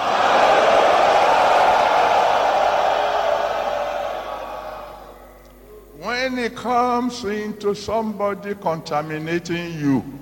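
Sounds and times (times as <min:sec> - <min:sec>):
audience roaring together like lions: 0:00.0 - 0:05.2
speech: 0:06.5 - 0:10.1.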